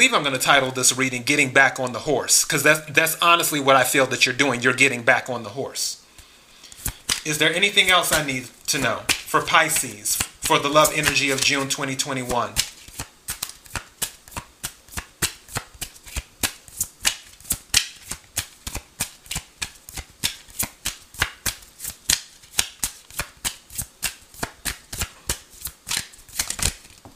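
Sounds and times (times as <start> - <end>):
speech: 0.0 - 6.0, 7.2 - 12.7
tarot cards being shuffled: 6.7 - 27.1.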